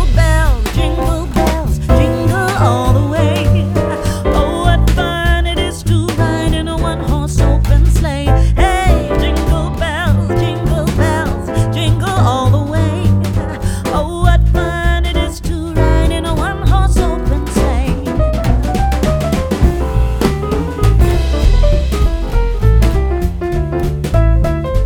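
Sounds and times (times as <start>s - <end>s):
jazz arrangement of a Christmas song: 0.0s - 24.8s.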